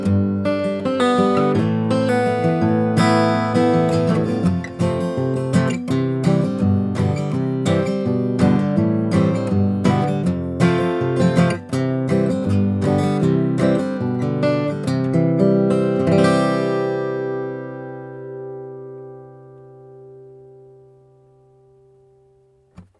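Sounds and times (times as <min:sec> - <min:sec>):
fingerpicking on strings: 0:00.0 - 0:22.9.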